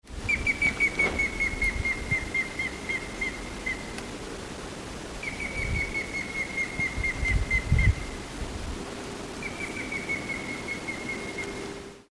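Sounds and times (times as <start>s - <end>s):
grey-headed woodpecker whistled notes: 0.3s - 3.9s, 5.2s - 8.0s, 9.4s - 11.6s.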